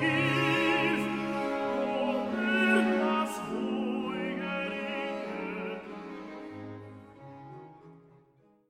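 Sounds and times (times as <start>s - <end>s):
choir singing a chorale: 0.0s - 6.4s.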